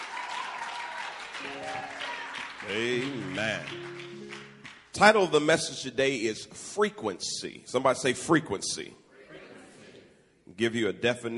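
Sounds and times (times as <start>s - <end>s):
crowd noise: 0.0s - 4.7s
church congregation applauding: 0.0s - 5.5s
speech: 1.4s - 4.2s, 5.0s - 9.0s, 10.6s - 11.3s.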